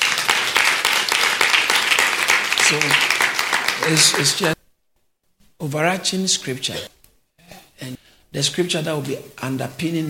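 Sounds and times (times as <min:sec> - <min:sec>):
audience clapping: 0:00.0 - 0:04.6
speech: 0:02.7 - 0:03.2, 0:03.8 - 0:04.6, 0:05.6 - 0:07.0, 0:07.8 - 0:10.0.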